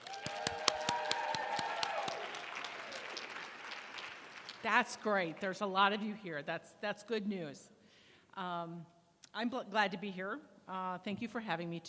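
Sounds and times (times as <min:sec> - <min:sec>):
audience clapping: 0:00.0 - 0:05.4
speech: 0:04.6 - 0:07.8, 0:08.4 - 0:11.8.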